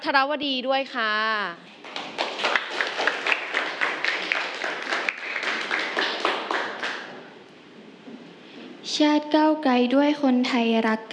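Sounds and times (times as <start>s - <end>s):
speech: 0.0s - 1.8s, 8.9s - 11.1s
audience applauding: 1.8s - 7.2s.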